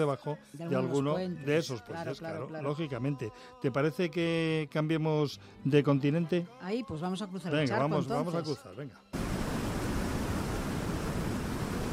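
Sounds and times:
speech: 0:00.0 - 0:09.2
rushing water like ocean waves: 0:09.2 - 0:11.9.

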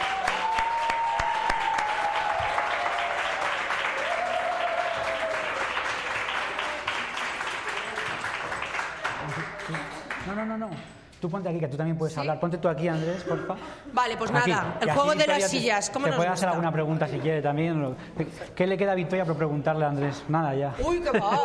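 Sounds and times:
voices whooping and cheering: 0:00.0 - 0:05.8
audience applause: 0:00.0 - 0:10.3
speech: 0:11.2 - 0:21.4.

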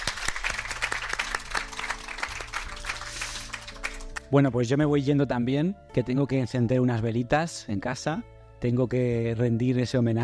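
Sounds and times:
audience applause: 0:00.0 - 0:04.2
speech: 0:04.3 - 0:10.2.

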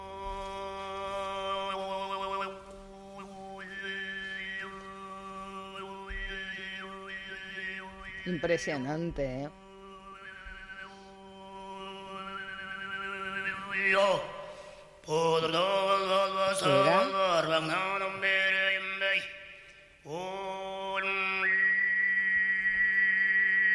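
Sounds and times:
overtone throat singing with flute-like whistle: 0:00.0 - 0:08.4, 0:09.4 - 0:23.7
speech: 0:08.2 - 0:09.6, 0:15.1 - 0:18.0.

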